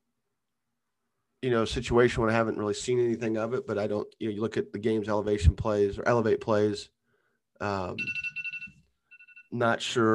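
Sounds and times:
speech: 1.4s - 7.0s, 7.6s - 8.3s, 9.5s - 10.1s
phone alarm ringing: 8.0s - 9.6s.

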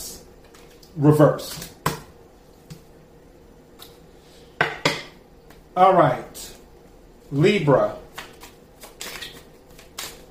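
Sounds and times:
speech: 1.0s - 1.7s, 5.8s - 6.3s, 7.3s - 8.0s
tarot cards shuffled and drawn for a reading: 8.1s - 10.2s.

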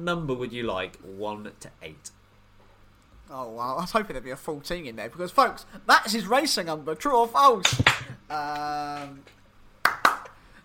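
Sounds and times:
speech: 0.0s - 2.2s, 3.3s - 9.4s
hand claps: 7.6s - 9.1s, 9.8s - 10.4s.

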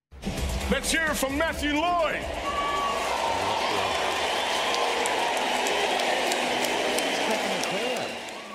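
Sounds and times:
speech: 0.7s - 2.5s
crowd applause at stadium: 2.3s - 8.5s.

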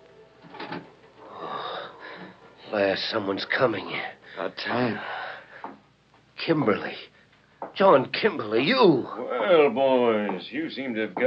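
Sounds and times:
door of the room creaking slowly open: 0.4s - 1.3s
speech: 2.7s - 5.2s, 6.4s - 7.1s, 7.8s - 11.2s.

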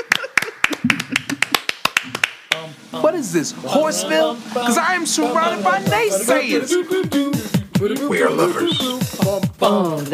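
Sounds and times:
hands clapping in a steady quick rhythm: 0.0s - 2.7s
speech: 2.9s - 10.1s.

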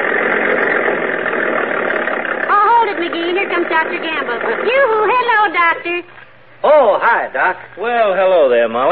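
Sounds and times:
tractor engine running: 0.0s - 6.1s
speech: 3.0s - 8.9s.

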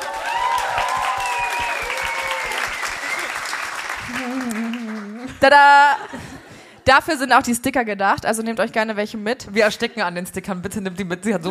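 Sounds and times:
audience clapping: 0.0s - 5.5s
laughter: 4.1s - 6.7s
speech: 5.4s - 6.2s, 6.9s - 11.4s.

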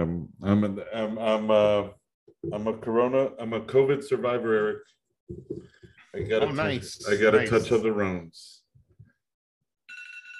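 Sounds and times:
speech: 0.5s - 8.6s
phone timer alarm ringing: 9.9s - 10.3s.

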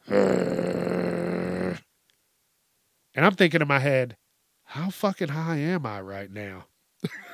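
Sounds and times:
voice imitating a baby bear growling: 0.0s - 1.9s
speech: 0.1s - 0.5s, 3.2s - 7.3s.

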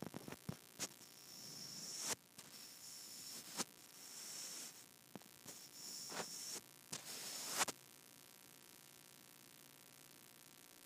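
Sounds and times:
microphone rubbed against skin: 0.0s - 7.7s
faint steady hiss: 0.7s - 7.9s.

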